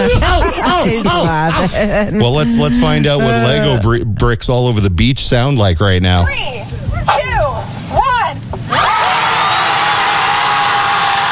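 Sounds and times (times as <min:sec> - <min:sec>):
laughter: 0:00.0 - 0:04.0
speech: 0:00.6 - 0:07.4
crowd screaming: 0:08.6 - 0:11.3.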